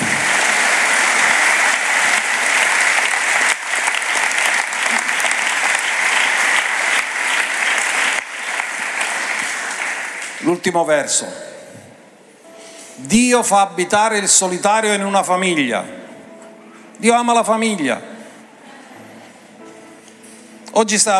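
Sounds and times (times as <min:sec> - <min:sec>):
large crowd clapping: 0:00.0 - 0:10.6
speech: 0:10.6 - 0:11.5, 0:13.0 - 0:16.0, 0:17.0 - 0:18.1, 0:20.8 - 0:21.1.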